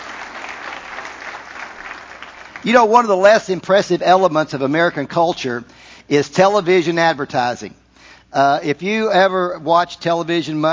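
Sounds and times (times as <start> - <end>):
congregation clapping during a church service: 0.0 - 3.7
speech: 2.6 - 10.7.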